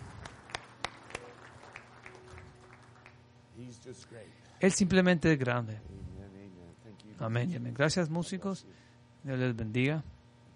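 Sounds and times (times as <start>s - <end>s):
audience applause: 0.0s - 3.2s
speech: 3.6s - 6.1s, 7.2s - 10.2s.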